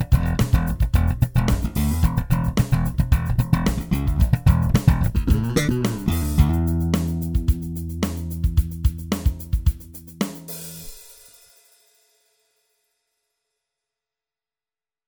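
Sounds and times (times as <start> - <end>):
slap: 0.0 - 9.5.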